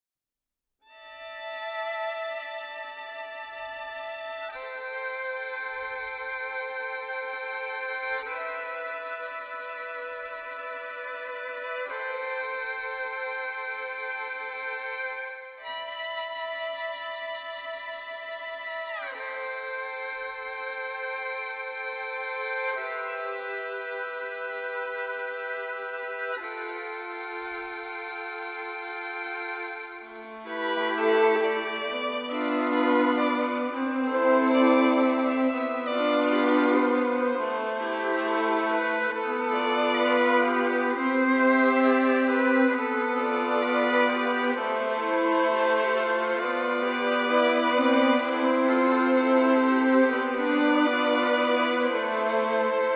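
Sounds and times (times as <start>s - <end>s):
strings: 0.9s - 52.9s.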